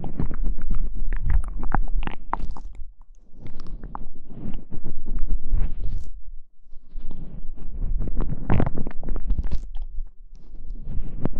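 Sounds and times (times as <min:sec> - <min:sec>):
wet mouth clicks and smacks: 0:00.0 - 0:06.2, 0:08.0 - 0:10.1.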